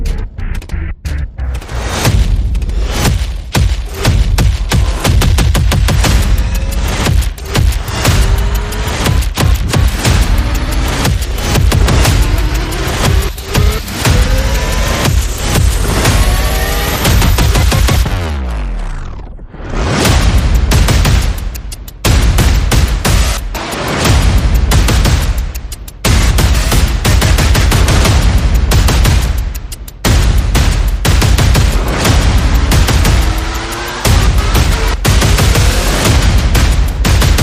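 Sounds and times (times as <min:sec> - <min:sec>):
percussion: 0:00.0 - 0:18.4, 0:19.8 - 0:37.4
sound effects: 0:00.0 - 0:25.2, 0:30.0 - 0:37.4.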